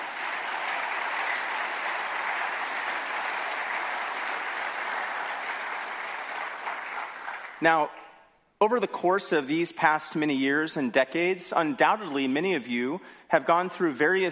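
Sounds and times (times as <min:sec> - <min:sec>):
audience applause: 0:00.0 - 0:07.6
speech: 0:07.6 - 0:08.0, 0:08.6 - 0:14.2.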